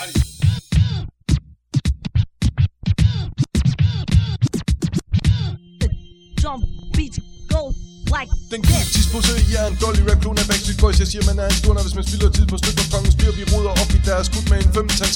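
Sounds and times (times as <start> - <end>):
DJ turntable scratching: 1.8 - 5.6, 8.6 - 15.1
steady low beat: 5.5 - 15.1
speech: 8.2 - 15.1.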